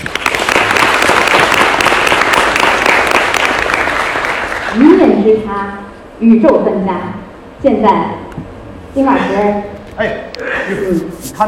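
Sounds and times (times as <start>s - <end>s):
audience applause: 0.0s - 5.1s
speech: 5.3s - 11.4s.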